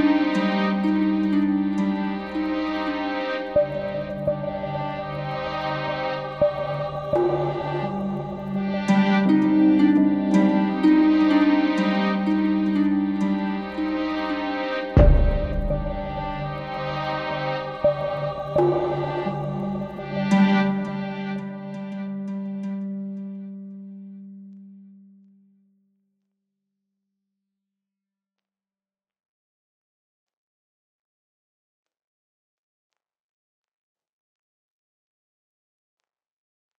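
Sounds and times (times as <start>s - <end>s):
Afrobeat music: 0.0s - 21.8s.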